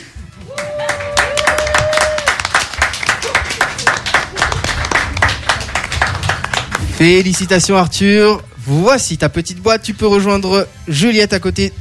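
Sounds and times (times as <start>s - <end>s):
TV game-show audience clapping: 0.4s - 7.3s
TV game-show audience stamping feet: 1.6s - 7.0s
speech: 7.0s - 11.7s.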